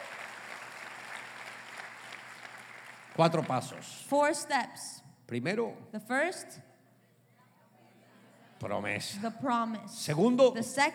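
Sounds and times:
audience applause: 0.0s - 3.9s
speech: 3.2s - 6.7s, 8.6s - 10.9s.

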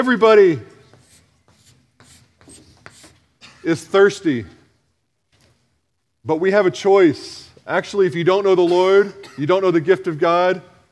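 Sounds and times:
speech: 0.0s - 0.7s, 3.6s - 4.6s, 6.2s - 10.7s
scratchy strokes of a diagram drawn by hand: 0.9s - 3.2s.

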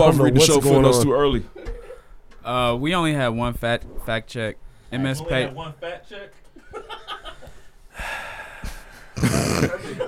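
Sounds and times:
speech: 0.0s - 1.6s, 2.4s - 7.2s
person taking a deep breath in a group conversation: 7.6s - 10.0s.

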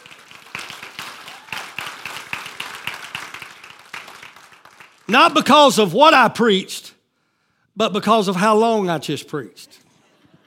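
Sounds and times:
audience round of applause: 0.0s - 5.1s
speech: 5.1s - 6.8s, 7.8s - 9.8s.

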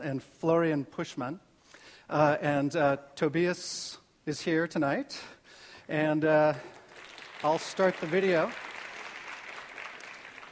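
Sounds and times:
speech: 0.0s - 1.5s, 2.1s - 6.8s, 7.4s - 8.7s
small audience clapping: 6.6s - 10.4s.

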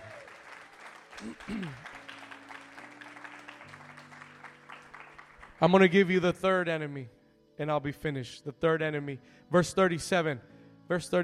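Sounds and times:
audience hand clapping: 0.0s - 5.9s
speech: 1.2s - 1.9s, 5.6s - 11.2s.

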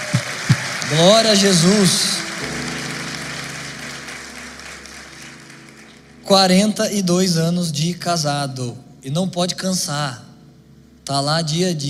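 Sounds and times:
audience clapping: 0.0s - 6.3s
speech: 0.9s - 2.2s, 6.3s - 10.2s, 11.1s - 11.8s.

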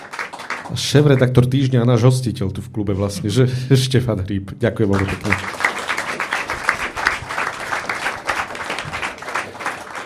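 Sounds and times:
audience applause for a speaker at a club event: 0.0s - 1.3s, 4.9s - 10.0s
speech: 0.7s - 5.6s.

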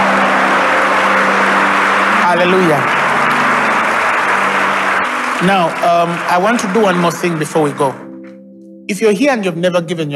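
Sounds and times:
audience clapping hands: 0.0s - 8.1s
speech: 2.4s - 3.0s, 5.4s - 8.1s, 8.9s - 10.1s.

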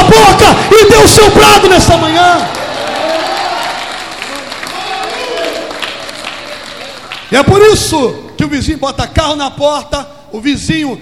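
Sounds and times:
speech: 0.1s - 2.6s, 7.3s - 11.0s
audience applauding: 2.2s - 7.4s.

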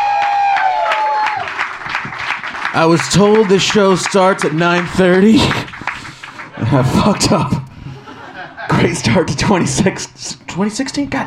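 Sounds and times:
audience round of applause: 0.0s - 7.4s
speech: 2.8s - 5.7s, 6.6s - 7.6s, 8.8s - 11.2s
laughter: 5.2s - 9.2s.

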